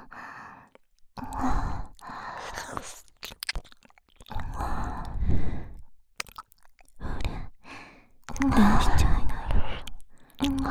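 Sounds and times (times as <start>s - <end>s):
licking of both ears: 0.7s - 5.2s, 6.2s - 7.0s, 8.2s - 9.1s, 9.8s - 10.6s.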